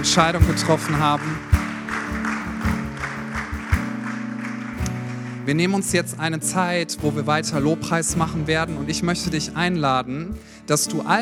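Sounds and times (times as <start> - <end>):
speech: 0.0 - 1.6, 5.5 - 11.1
audience applause: 0.0 - 5.8.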